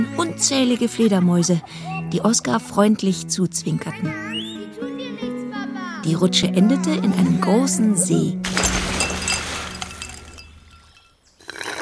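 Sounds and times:
speech: 0.0 - 4.4, 6.0 - 8.6
ice cubes clinking into a glass: 8.5 - 11.2.

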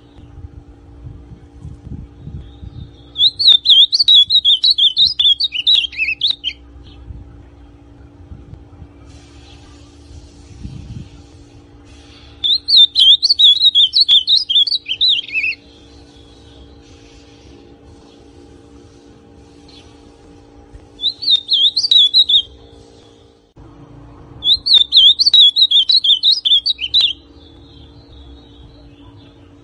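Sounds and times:
ultramarine grosbeak song: 2.2 - 7.0, 12.1 - 17.0, 20.9 - 23.3, 24.4 - 29.6.

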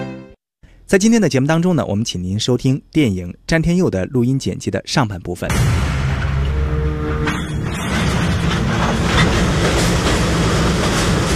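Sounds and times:
speech: 0.9 - 6.0
steam train rumbling on railway tracks: 6.2 - 11.3.

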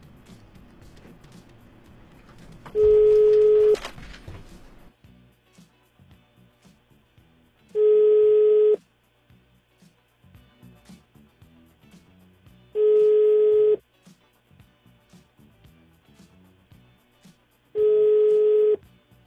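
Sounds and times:
outgoing telephone ringback tone of an unanswered call: 2.8 - 3.8, 7.8 - 8.8, 12.8 - 13.8, 17.8 - 18.8.

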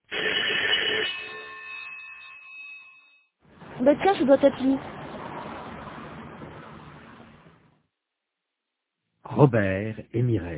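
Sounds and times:
imperious doorbell ringing: 0.1 - 3.4
speech: 3.8 - 5.0, 9.4 - 10.5.

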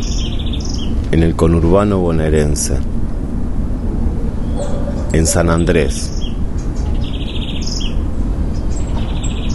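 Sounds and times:
small birds chirping in backyard: 0.0 - 1.2, 4.2 - 9.5
speech: 1.1 - 3.0, 5.1 - 6.2.

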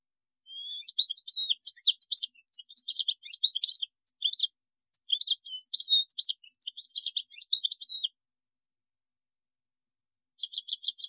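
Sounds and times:
European goldfinch twittering song: 0.5 - 8.2, 10.4 - 11.0.

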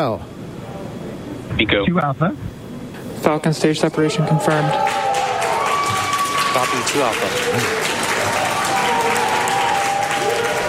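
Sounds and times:
speech: 0.0 - 0.4, 1.5 - 2.6, 3.2 - 5.2, 6.6 - 9.2
NASA mission control crew cheering: 4.3 - 10.6.

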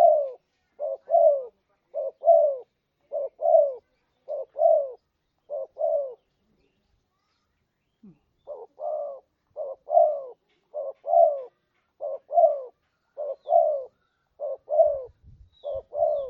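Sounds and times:
spotted dove calls used as a lure for catching birds: 0.0 - 6.3, 8.0 - 16.2.

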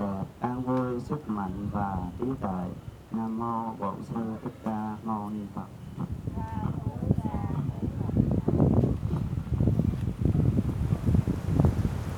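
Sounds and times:
faint tonal voice-like sounds: 0.0 - 8.8
wind buffeting the microphone: 0.0 - 12.1
speech: 1.1 - 6.1.

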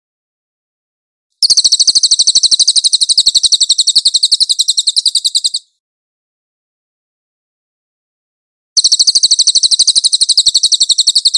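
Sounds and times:
Cililin chattering trill: 1.4 - 5.7, 8.8 - 11.3.

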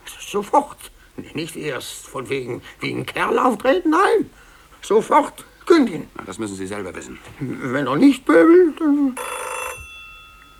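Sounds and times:
speech: 0.3 - 9.5
telephone electronic ring tone: 9.2 - 10.5.

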